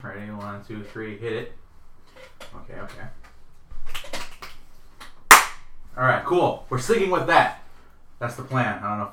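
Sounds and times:
speech: 0.0 - 1.6, 2.2 - 3.3, 6.0 - 7.6, 8.2 - 9.1
hand clap for audio sync: 4.0 - 5.7.

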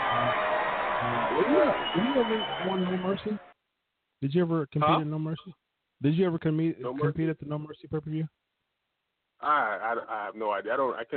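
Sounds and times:
applause sound effect: 0.0 - 3.5
speech: 1.4 - 3.5, 4.2 - 8.4, 9.4 - 11.1.

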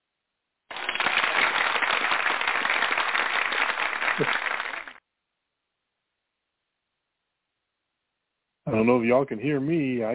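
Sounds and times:
applause sound effect from a button: 0.7 - 5.0
speech: 4.2 - 4.4, 8.8 - 10.1.

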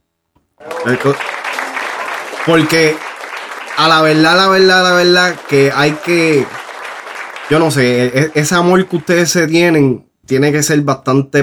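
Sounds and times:
speech: 0.6 - 1.3, 2.4 - 3.1, 3.8 - 6.6, 7.5 - 11.4
audience applause: 0.6 - 9.5.

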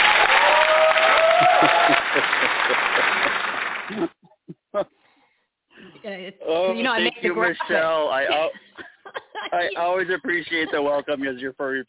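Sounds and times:
audience applause: 0.0 - 4.2
laughter: 1.2 - 4.9, 7.0 - 11.8
speech: 6.5 - 8.6, 9.5 - 11.8.

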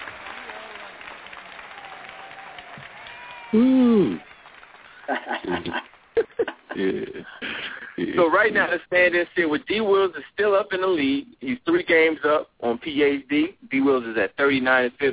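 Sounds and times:
clapping: 0.0 - 6.8
speech: 3.5 - 4.3, 5.1 - 5.9, 6.8 - 15.1
laughter: 4.8 - 8.4.

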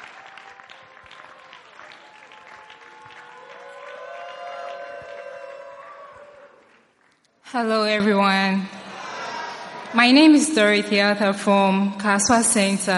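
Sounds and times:
audience applause at a church gathering: 0.0 - 7.3
speech: 7.5 - 8.8, 9.9 - 12.9.

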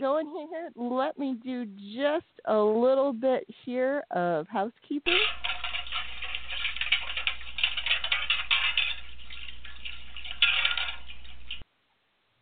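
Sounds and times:
speech: 0.0 - 5.6
metal plates washed in a metal wash tub on a stove: 5.1 - 11.6.

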